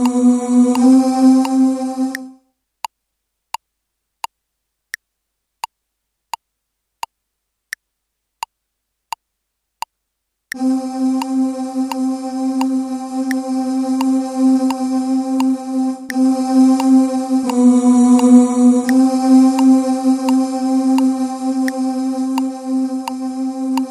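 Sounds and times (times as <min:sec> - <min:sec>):
tenors singing: 0:00.0 - 0:02.4, 0:10.6 - 0:23.8.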